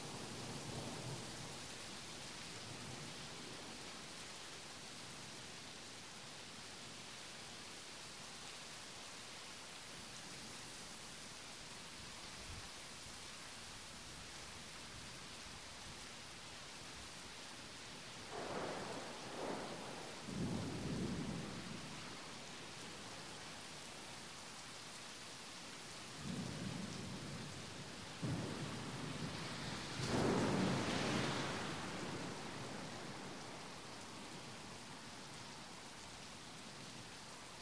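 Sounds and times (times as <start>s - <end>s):
heavy rain under a bridge: 0.0s - 37.5s
thunder: 18.3s - 21.6s, 28.2s - 32.8s.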